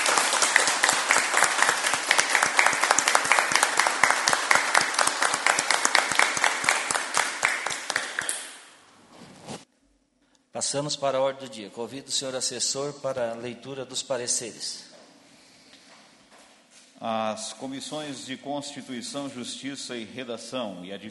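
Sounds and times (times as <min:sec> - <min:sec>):
standing crowd applause: 0:00.0 - 0:08.7
speech: 0:10.6 - 0:14.9, 0:17.0 - 0:21.1.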